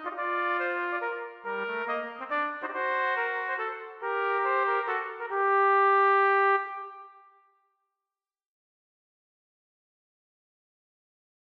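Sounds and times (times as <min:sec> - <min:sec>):
trumpet duet minuet: 0:00.0 - 0:07.4.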